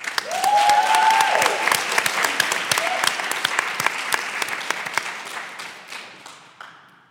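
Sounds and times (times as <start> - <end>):
audience applause welcoming a band: 0.0 - 7.0.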